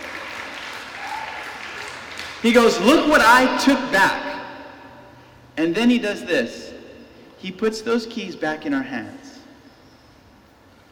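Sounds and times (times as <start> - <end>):
audience applause: 0.0 - 2.4
speech: 2.4 - 4.3, 5.6 - 6.7, 7.4 - 9.3.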